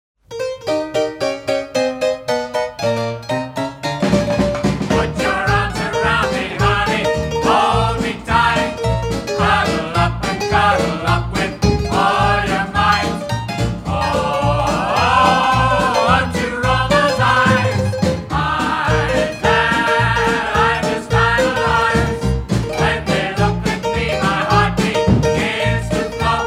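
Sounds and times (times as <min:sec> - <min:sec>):
piano medley: 0:00.2 - 0:26.4.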